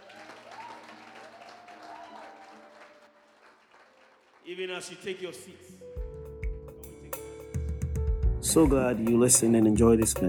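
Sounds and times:
audience clapping: 0.0s - 5.0s
speech: 4.5s - 5.9s, 8.5s - 10.2s.

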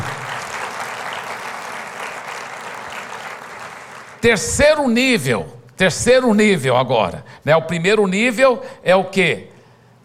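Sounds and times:
audience applause: 0.0s - 4.2s
speech: 4.2s - 9.5s.

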